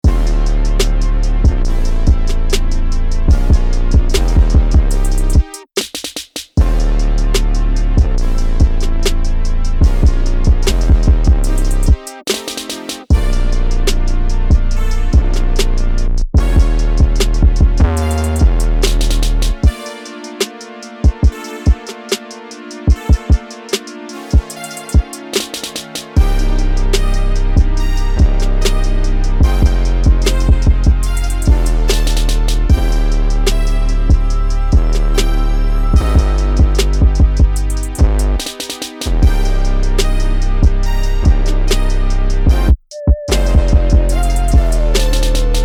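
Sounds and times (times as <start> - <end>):
instrumental music: 0.0 - 45.6.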